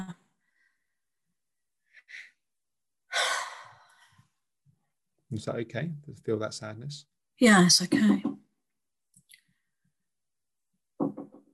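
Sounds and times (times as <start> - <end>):
speech: 5.3 - 8.3
soft dull knocking on a door: 7.9 - 8.5, 11.0 - 11.5.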